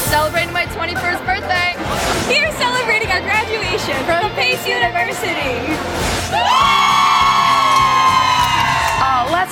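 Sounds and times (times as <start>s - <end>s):
speech: 0.2s - 7.1s, 9.0s - 9.5s
studio crowd cheering and whooping: 6.4s - 8.9s.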